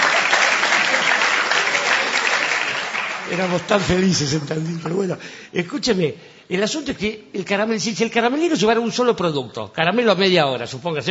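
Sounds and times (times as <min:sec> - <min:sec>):
audience applause: 0:00.0 - 0:05.2
speech: 0:03.3 - 0:11.0.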